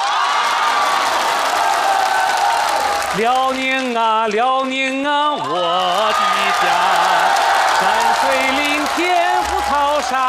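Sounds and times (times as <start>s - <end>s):
crowd cheering and whooping: 0.0s - 3.6s, 5.4s - 10.2s
audience applause: 0.0s - 10.2s
speech: 3.2s - 10.2s.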